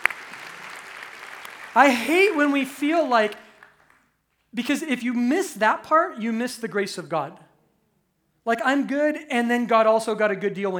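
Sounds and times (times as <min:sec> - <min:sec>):
audience clapping: 0:00.0 - 0:04.1
speech: 0:01.8 - 0:03.4, 0:04.5 - 0:07.5, 0:08.4 - 0:10.7.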